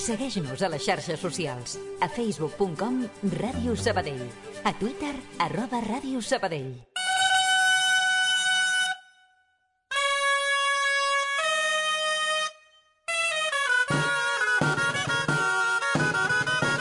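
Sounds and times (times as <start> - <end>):
speech: 0.1 - 6.9
traditional music with shrill reedy wind tones for human tower builders: 6.9 - 9.3, 9.9 - 16.7.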